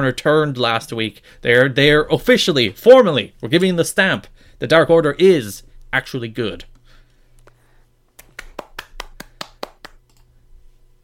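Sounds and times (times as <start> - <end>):
speech: 0.0 - 6.7
round of applause: 8.2 - 10.0.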